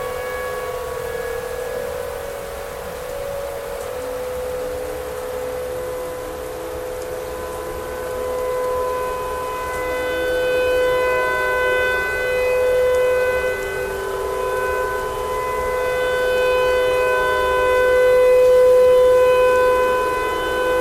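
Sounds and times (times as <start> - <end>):
tornado siren: 0.0 - 20.8.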